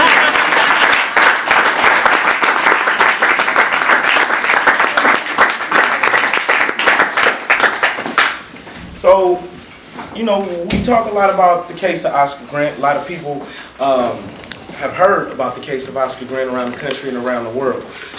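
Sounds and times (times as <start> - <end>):
audience applause: 0.0 - 8.4
speech: 10.3 - 18.1.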